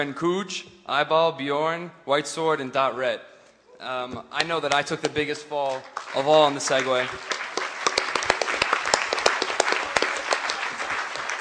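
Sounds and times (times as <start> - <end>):
speech: 0.0 - 7.4
audience applauding: 5.7 - 11.4.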